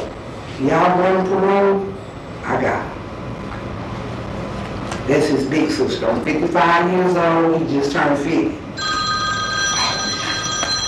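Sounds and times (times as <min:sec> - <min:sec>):
speech: 0:00.6 - 0:02.9, 0:05.1 - 0:09.0
moving truck shrill tonal ringing: 0:08.8 - 0:10.8.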